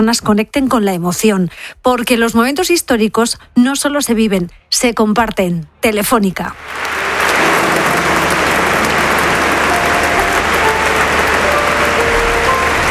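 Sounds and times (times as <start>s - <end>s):
speech: 0.0s - 7.0s
applause in the church of San Agustín in Barcelona: 6.6s - 12.8s.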